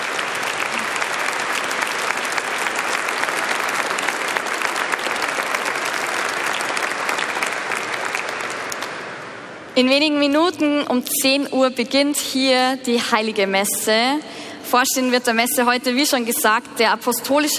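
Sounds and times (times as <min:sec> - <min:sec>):
audience applause: 0:00.0 - 0:09.5
speech: 0:09.8 - 0:17.5.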